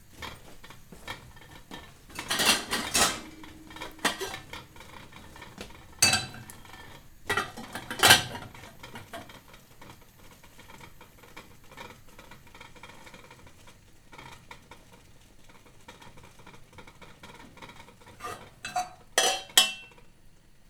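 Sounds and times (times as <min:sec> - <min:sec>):
kitchen saucepan lids: 0:00.1 - 0:11.9, 0:17.6 - 0:20.0.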